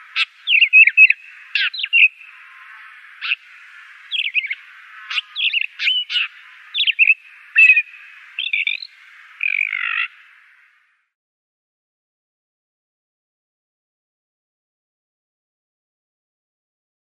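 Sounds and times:
Blackstart singing: 0.0 - 11.0.

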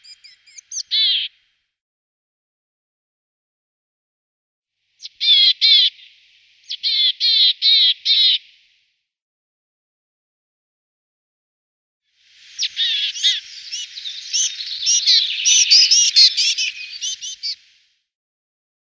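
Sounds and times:
willow tit nestling calls: 0.0 - 1.3, 5.0 - 8.6, 12.3 - 17.8.

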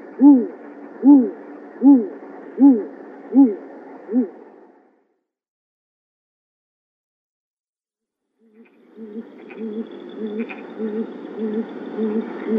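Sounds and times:
male Great Grey Owl display call: 0.0 - 4.5, 8.5 - 12.5.

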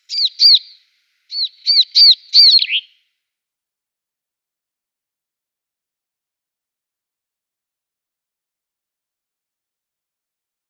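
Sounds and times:
Siberian tit song: 0.0 - 3.1.

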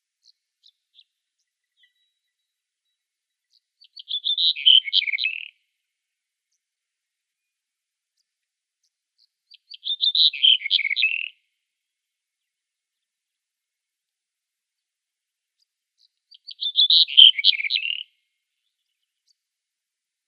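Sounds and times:
black-headed bunting singing: 3.4 - 5.6, 9.5 - 11.4, 16.0 - 18.1.

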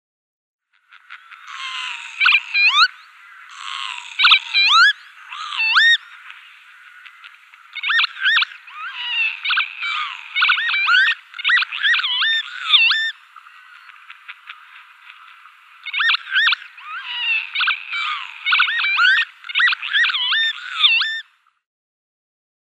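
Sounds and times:
male Northern lapwing display calls: 0.7 - 21.3.

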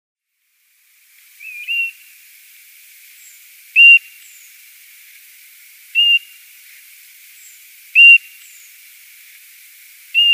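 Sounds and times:
European golden plover repeating an even-pitched whistle: 3.8 - 4.0, 8.0 - 8.2.

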